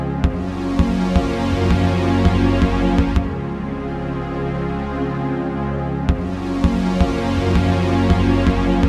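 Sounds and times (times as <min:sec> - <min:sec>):
penta D Maj7 backing track: 0:00.1 - 0:04.9, 0:05.8 - 0:08.8.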